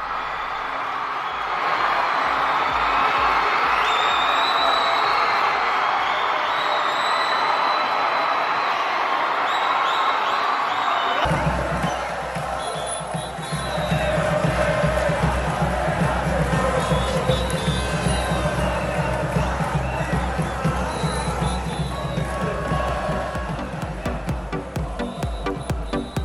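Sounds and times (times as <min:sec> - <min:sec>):
football fans cheering and chanting in celebration after victory: 0:00.0 - 0:26.2
rhythmic thumping: 0:11.3 - 0:26.2.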